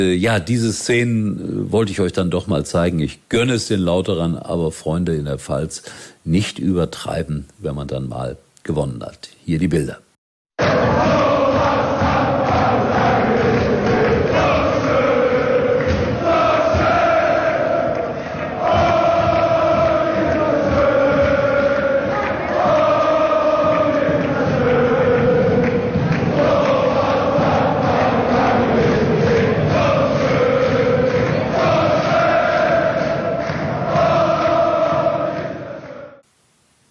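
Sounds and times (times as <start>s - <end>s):
speech: 0.0s - 10.0s
football fans chanting after a win: 10.6s - 36.2s.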